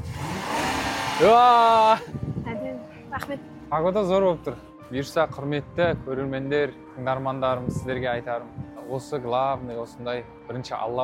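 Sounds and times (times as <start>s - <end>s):
car engine revving as the gas pedal is pressed: 0.0s - 2.0s
speech: 1.2s - 2.2s, 3.2s - 11.0s.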